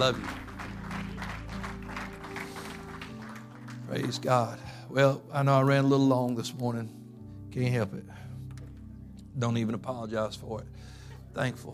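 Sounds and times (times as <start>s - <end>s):
speech: 0.0s - 0.4s, 3.9s - 7.0s, 7.6s - 8.2s, 9.4s - 10.8s, 11.4s - 11.7s
audience hand clapping: 0.0s - 4.6s.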